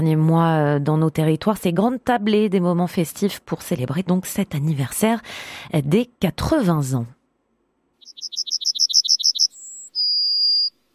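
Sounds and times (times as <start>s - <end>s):
speech: 0.0s - 7.2s
yellowhammer singing: 8.0s - 10.8s.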